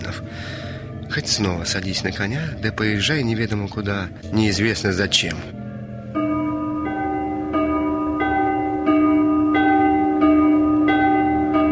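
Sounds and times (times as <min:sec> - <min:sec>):
speech: 0:01.1 - 0:05.6
bronze church bell being struck: 0:04.3 - 0:11.7.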